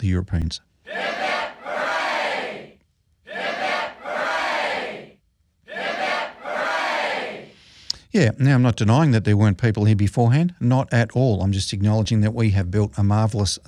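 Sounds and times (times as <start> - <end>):
speech: 0.0 - 1.3, 8.2 - 13.6
crowd giving three cheers: 0.9 - 5.1, 5.7 - 7.5.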